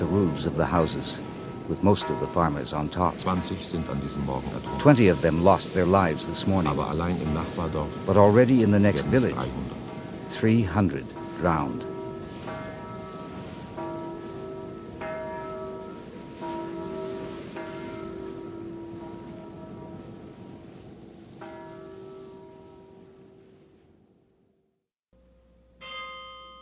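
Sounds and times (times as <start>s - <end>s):
carillon bells chiming a melodic sequence: 0.0s - 20.0s, 25.8s - 26.5s
speech: 0.2s - 11.9s.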